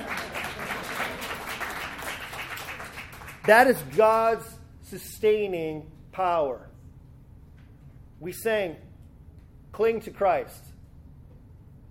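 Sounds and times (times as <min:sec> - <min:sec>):
applause: 0:00.0 - 0:04.4
speech: 0:03.4 - 0:06.7, 0:08.2 - 0:08.9, 0:09.8 - 0:10.7.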